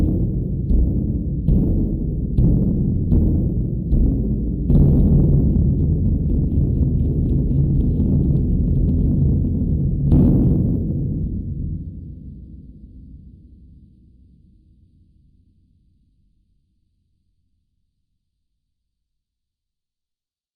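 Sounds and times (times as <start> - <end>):
ambience: 0.0 - 13.4.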